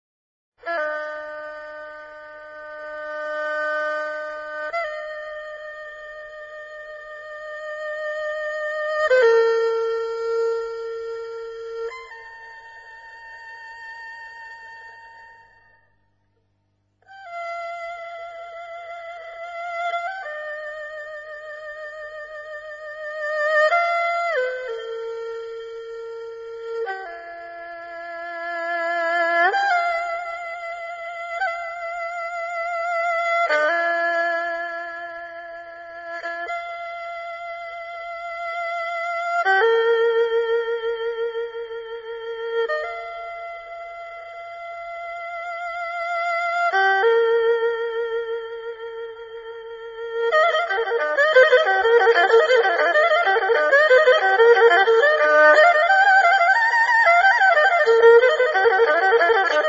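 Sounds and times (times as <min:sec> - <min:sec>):
erhu playing: 0:00.6 - 0:16.0, 0:17.0 - 0:59.6.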